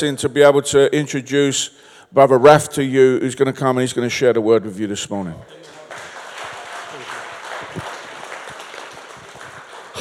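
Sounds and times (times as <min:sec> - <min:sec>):
speech: 0:00.0 - 0:06.0
audience clapping: 0:05.5 - 0:09.9.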